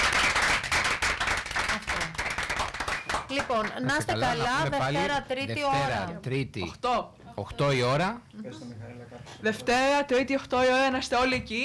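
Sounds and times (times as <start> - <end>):
audience applause: 0.0 - 3.8
speech: 3.3 - 11.6.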